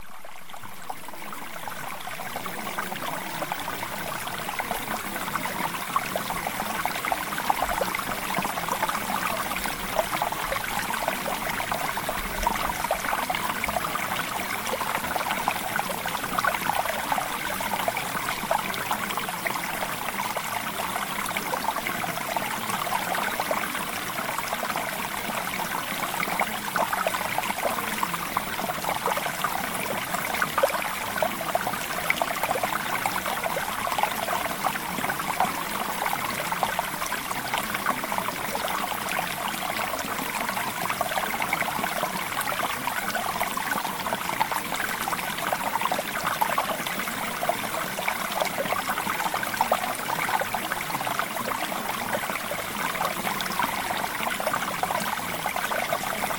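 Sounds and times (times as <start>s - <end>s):
mountain stream flowing: 0.0s - 56.3s.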